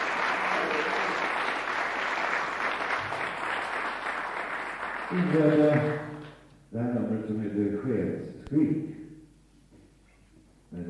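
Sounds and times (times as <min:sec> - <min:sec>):
audience applause: 0:00.0 - 0:06.4
speech: 0:05.1 - 0:06.1, 0:06.7 - 0:08.9.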